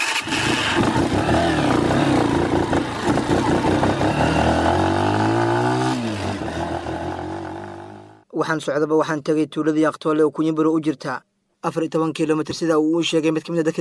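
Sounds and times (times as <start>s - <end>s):
two-wheeled motorcycle engine running while travelling: 0.2s - 8.2s
speech: 8.4s - 13.7s.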